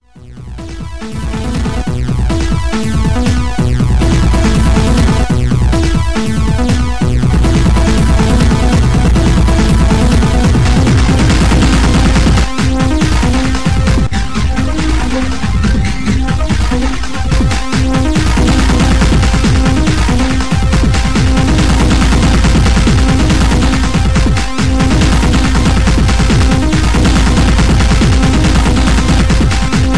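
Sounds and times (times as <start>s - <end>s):
DJ mixing music: 0.0s - 29.9s.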